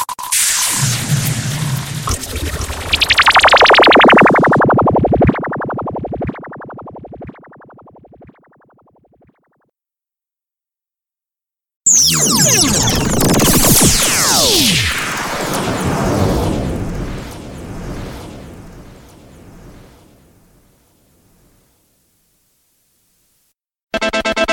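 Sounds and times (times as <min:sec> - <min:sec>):
sound effects: 0:00.0 - 0:08.8, 0:11.9 - 0:18.4.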